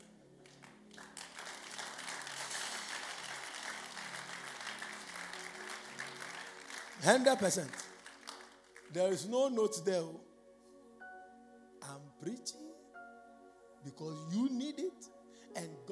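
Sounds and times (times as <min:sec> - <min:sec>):
audience clapping: 0:00.0 - 0:09.2
speech: 0:07.0 - 0:07.9, 0:08.9 - 0:10.3, 0:11.9 - 0:12.6, 0:13.8 - 0:15.8.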